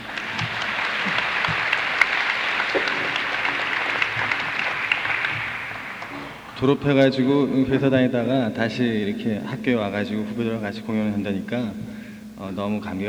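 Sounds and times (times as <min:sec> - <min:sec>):
audience applause: 0:00.0 - 0:06.8
speech: 0:06.6 - 0:13.0.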